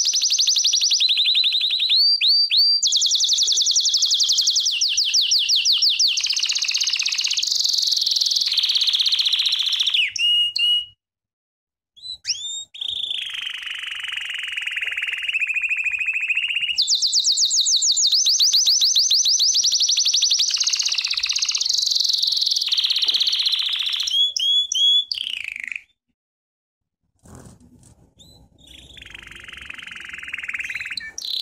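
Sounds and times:
American Singer canary singing: 0.0 - 10.9, 12.0 - 26.0, 27.2 - 31.4.

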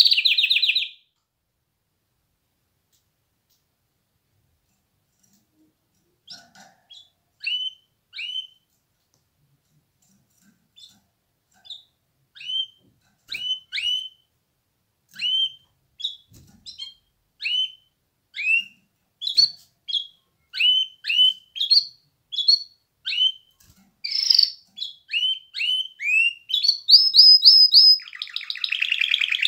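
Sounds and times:
canary singing trills and rolling tours: 0.0 - 1.1, 6.2 - 8.7, 11.6 - 14.3, 15.2 - 29.4.

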